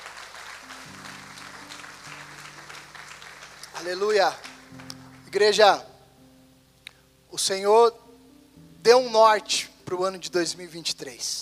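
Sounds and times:
audience applause: 0.0s - 5.3s
speech: 3.8s - 5.9s, 7.4s - 8.0s, 8.8s - 11.4s.

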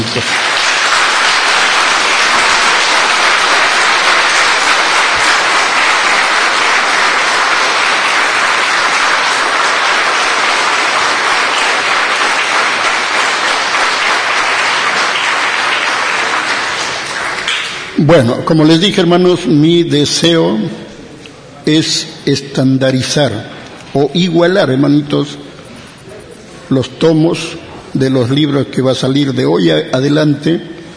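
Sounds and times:
audience applause: 0.0s - 18.0s
speech: 0.2s - 0.5s, 18.1s - 20.8s, 21.6s - 25.4s, 26.7s - 30.7s.

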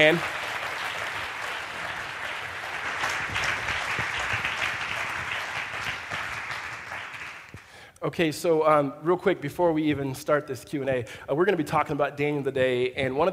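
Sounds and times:
speech: 0.0s - 0.4s, 8.0s - 13.3s
audience applause at a Bible-study gathering: 0.0s - 7.7s.

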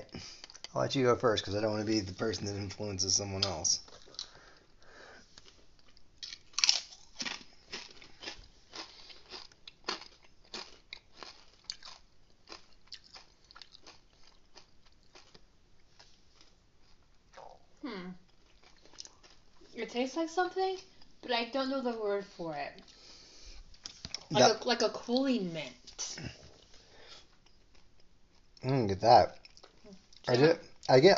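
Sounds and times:
speech: 0.8s - 3.9s, 20.2s - 23.0s, 24.3s - 26.3s, 28.6s - 29.4s, 30.3s - 31.1s
biting and chewing crunchy chips: 3.4s - 4.4s, 5.3s - 17.6s, 18.2s - 19.6s, 27.2s - 28.6s.

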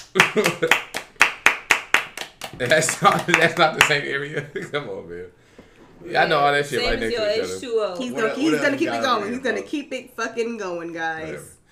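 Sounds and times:
hands clapping: 0.0s - 4.1s
speech: 0.2s - 0.9s, 2.6s - 5.4s, 6.0s - 11.6s.

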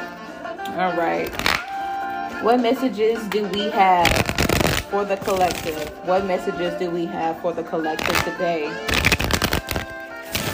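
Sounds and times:
speech: 0.8s - 1.6s, 2.4s - 9.2s
deck of cards shuffling: 4.0s - 6.0s, 8.9s - 10.5s.

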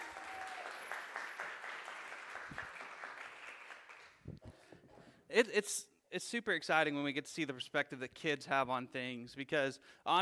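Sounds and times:
audience applause: 0.0s - 4.2s
speech: 5.3s - 10.1s.

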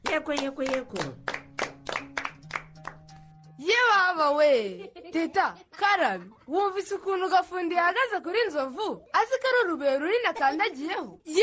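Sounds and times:
hands clapping: 0.0s - 3.4s
speech: 0.1s - 1.3s, 3.6s - 11.4s.

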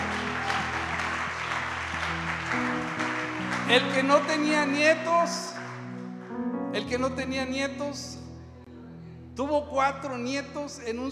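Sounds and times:
audience applause: 0.0s - 6.2s
speech: 3.7s - 5.6s, 6.8s - 8.2s, 9.4s - 11.1s.

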